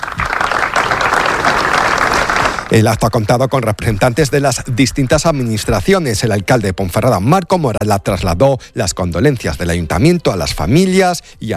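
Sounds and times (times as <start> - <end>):
big round of applause: 0.0 - 2.8
speech: 2.7 - 11.5.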